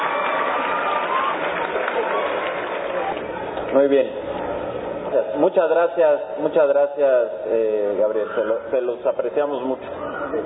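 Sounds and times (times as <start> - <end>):
audience applause: 0.0 - 3.5
speech: 3.7 - 4.2, 5.2 - 10.4.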